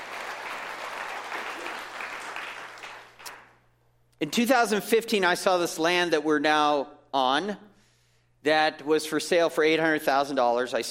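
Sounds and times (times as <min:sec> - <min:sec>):
audience applause: 0:00.0 - 0:03.5
speech: 0:04.2 - 0:07.7, 0:08.4 - 0:10.8.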